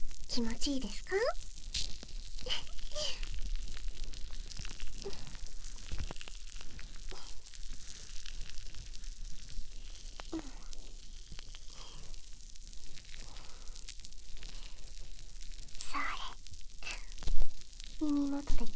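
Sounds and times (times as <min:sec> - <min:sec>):
foam bubbles crackling near ear: 0:00.0 - 0:18.7
speech: 0:00.3 - 0:01.5.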